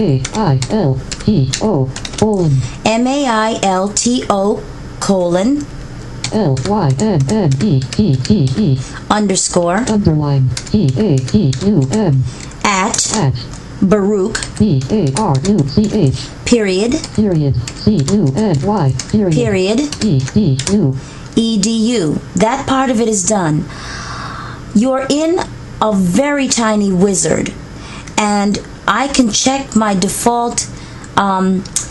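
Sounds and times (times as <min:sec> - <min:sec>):
typing on a computer keyboard: 0:00.0 - 0:02.4, 0:05.6 - 0:08.6, 0:09.8 - 0:13.6, 0:14.3 - 0:16.1, 0:16.9 - 0:20.8
speech: 0:00.0 - 0:24.0, 0:24.7 - 0:27.6, 0:28.2 - 0:31.8.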